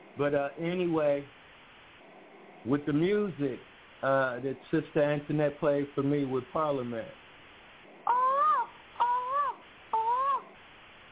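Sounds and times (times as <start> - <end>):
speech: 0.2 - 1.4, 2.6 - 7.2
crow cawing: 8.1 - 10.6.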